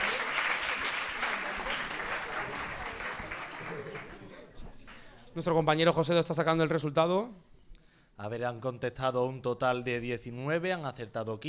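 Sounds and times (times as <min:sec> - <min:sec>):
applause: 0:00.0 - 0:05.1
speech: 0:05.4 - 0:07.5, 0:08.2 - 0:11.4.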